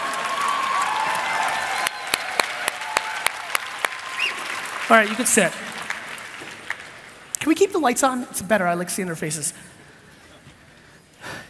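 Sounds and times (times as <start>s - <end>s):
audience applause: 0.0s - 7.4s
speech: 4.9s - 5.8s, 7.5s - 9.8s.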